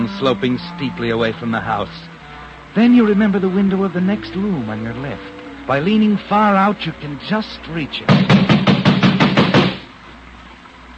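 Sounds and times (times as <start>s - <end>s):
speech: 0.2s - 2.1s, 2.8s - 8.3s
pounding on a door: 8.1s - 9.9s.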